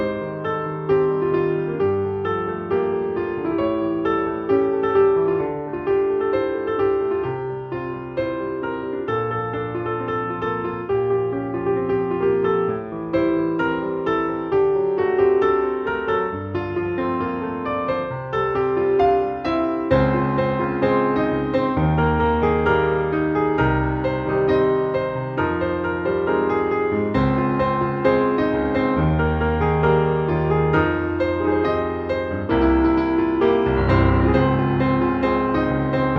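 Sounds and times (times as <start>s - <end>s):
piano piece: 0.0s - 36.1s.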